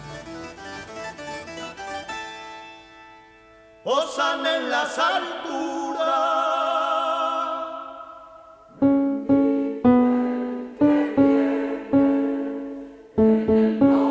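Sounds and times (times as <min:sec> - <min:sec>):
tenor singing: 0:03.8 - 0:14.0.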